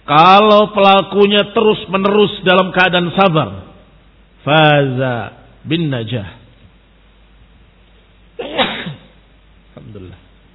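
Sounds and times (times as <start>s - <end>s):
speech: 0.1s - 3.6s, 4.4s - 6.4s
person sneezing: 8.4s - 9.2s.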